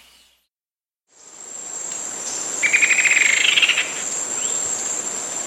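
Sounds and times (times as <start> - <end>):
rufous-winged antwren rapid stuttering trills in South America: 2.2 - 5.4.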